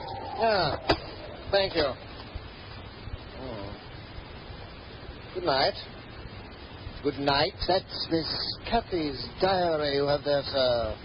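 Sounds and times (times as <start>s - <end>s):
storm wind blowing outside a window: 0.0s - 4.2s
speech: 0.4s - 2.1s, 5.4s - 6.0s, 7.0s - 11.0s.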